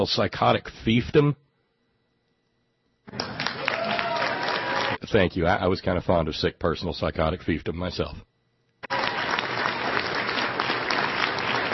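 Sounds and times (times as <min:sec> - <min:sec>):
speech: 0:00.0 - 0:01.4, 0:03.1 - 0:03.3, 0:05.1 - 0:08.3
applause after a political speech: 0:03.1 - 0:05.0, 0:08.9 - 0:11.7.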